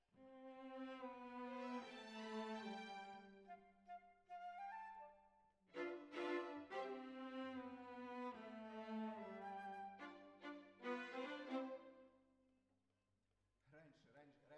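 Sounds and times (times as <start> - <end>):
violas playing: 0.5 - 3.6, 5.7 - 12.0.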